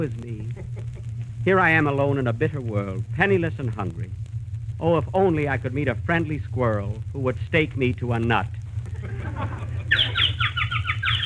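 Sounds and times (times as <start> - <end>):
laughter: 0.0 - 1.0, 8.9 - 10.6
speech: 0.0 - 4.2, 4.8 - 9.6
birds chirping: 9.6 - 11.2.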